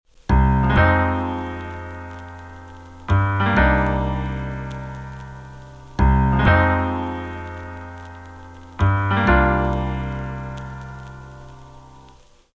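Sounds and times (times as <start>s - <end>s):
jazz sample on vinyl: 0.1s - 12.5s.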